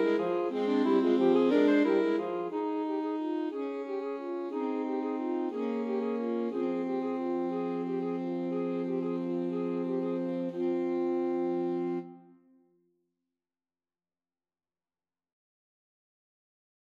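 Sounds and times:
alto saxophone trio playing a Christmas carol: 0.0s - 12.4s.

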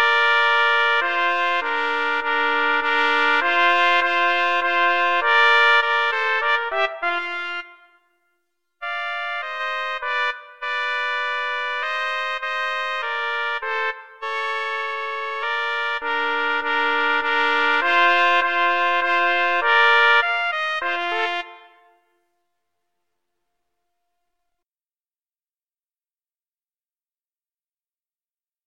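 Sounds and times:
trumpet duet playing a minuet: 0.0s - 8.2s, 8.8s - 22.1s.

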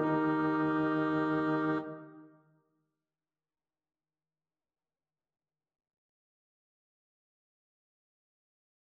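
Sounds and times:
alto saxophone melody: 0.0s - 2.3s.

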